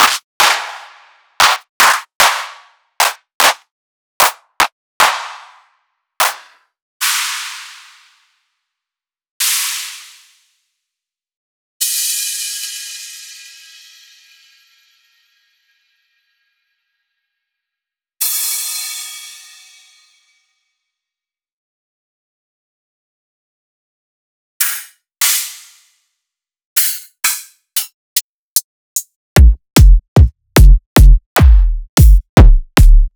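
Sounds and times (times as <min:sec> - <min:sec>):
drum hits: 0:00.0 - 0:00.8, 0:01.4 - 0:03.6, 0:05.0 - 0:05.6, 0:06.2 - 0:06.5, 0:29.4 - 0:33.1.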